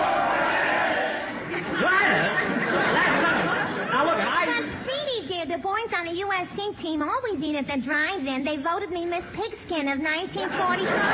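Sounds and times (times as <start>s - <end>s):
football stadium crowd: 0.0s - 4.3s
laughter: 1.3s - 4.8s, 10.3s - 11.1s
speech: 5.6s - 11.1s.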